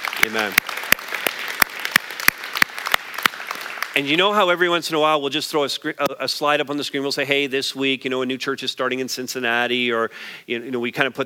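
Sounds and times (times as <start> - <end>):
audience applause: 0.0 - 4.2
speech: 0.2 - 0.7, 4.0 - 11.2.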